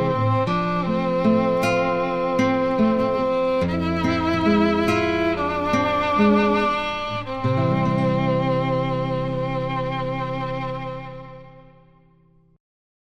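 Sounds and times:
crying classical violin: 0:00.0 - 0:12.3
crying classical guitar: 0:00.0 - 0:12.6.

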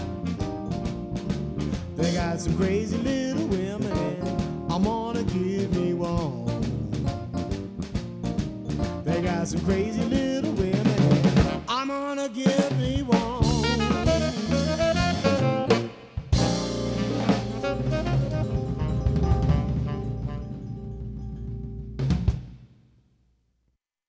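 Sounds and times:
live swing Dixieland jazz band playing: 0:00.0 - 0:11.8, 0:13.0 - 0:22.1.

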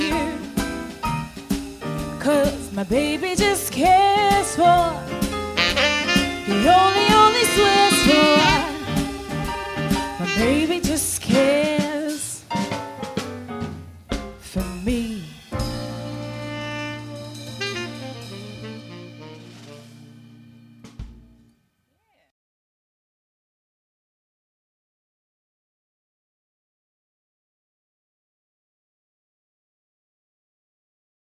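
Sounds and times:
female vocalist singing with swing band: 0:00.0 - 0:00.6, 0:02.2 - 0:05.2, 0:06.1 - 0:12.5, 0:14.4 - 0:15.5
swing band combo playing: 0:00.0 - 0:21.5.

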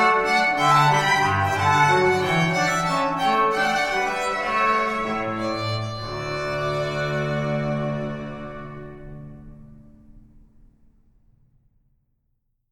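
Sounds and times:
classical string trio playing: 0:00.0 - 0:09.9.

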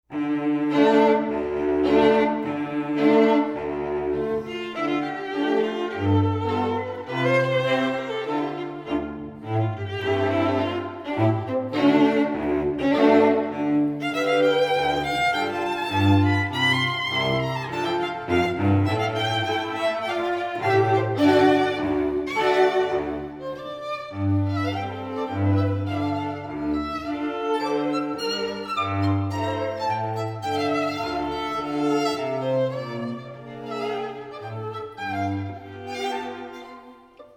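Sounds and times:
string quartet: 0:00.0 - 0:37.3.

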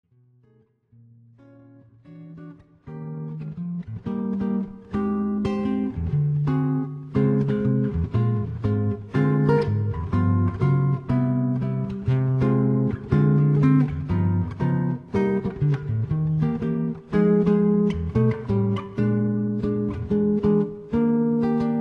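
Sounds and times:
solo jazz guitar: 0:00.1 - 0:21.7.

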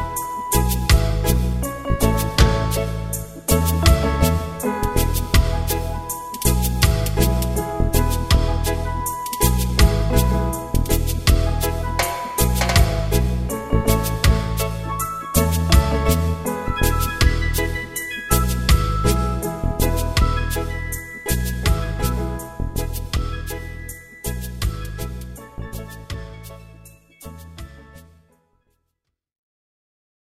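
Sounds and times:
reggae band playing instrumental: 0:00.0 - 0:26.6.

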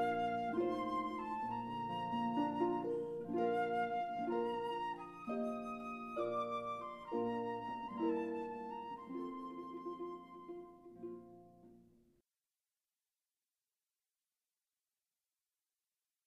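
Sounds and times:
flute playing a wedding march: 0:00.0 - 0:11.5
harp playing a wedding march: 0:00.0 - 0:11.9.

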